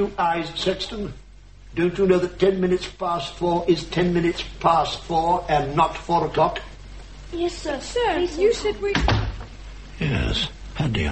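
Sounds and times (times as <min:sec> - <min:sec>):
speech: 0:00.0 - 0:06.7, 0:07.3 - 0:09.2, 0:10.0 - 0:11.0
door opening: 0:08.9 - 0:09.5.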